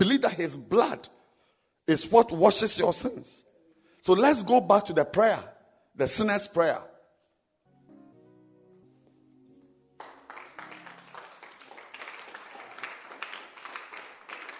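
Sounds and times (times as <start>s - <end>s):
speech: 0.0s - 1.2s, 1.9s - 6.9s
audience clapping: 10.0s - 14.5s.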